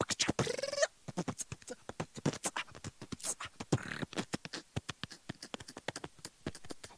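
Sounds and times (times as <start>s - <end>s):
beatbox: 0.0s - 6.9s.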